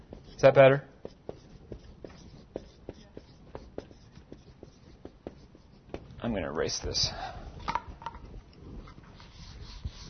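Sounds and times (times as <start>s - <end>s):
pen writing on a board: 0.0s - 6.2s, 9.2s - 10.0s
speech: 0.4s - 0.9s, 6.2s - 7.3s.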